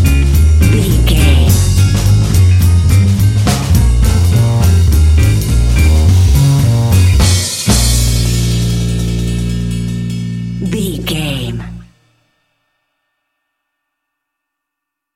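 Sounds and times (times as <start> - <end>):
jazz django swing music bed: 0.0 - 10.4.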